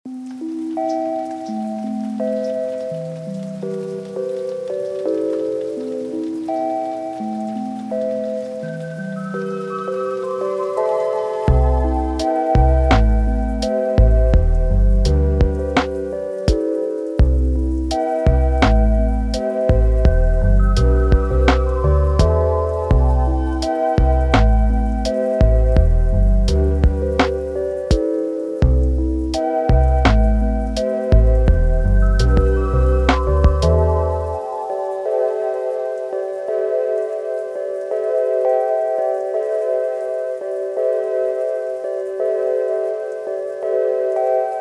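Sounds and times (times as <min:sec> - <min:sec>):
spring rain: 0:00.0 - 0:44.5.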